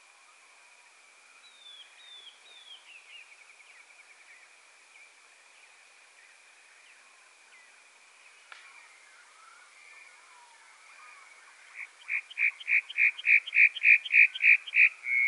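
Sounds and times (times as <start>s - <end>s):
bunting singing: 11.7s - 15.2s.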